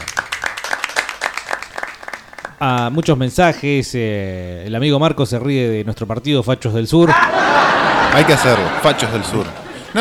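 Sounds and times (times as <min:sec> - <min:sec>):
applause: 0:00.0 - 0:03.0
speech: 0:02.6 - 0:07.5, 0:08.1 - 0:09.9
laughter: 0:07.0 - 0:09.9.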